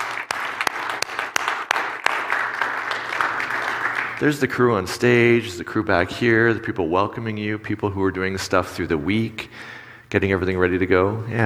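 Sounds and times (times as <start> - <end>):
crowd applauding: 0.0 - 4.3
speech: 4.2 - 11.4.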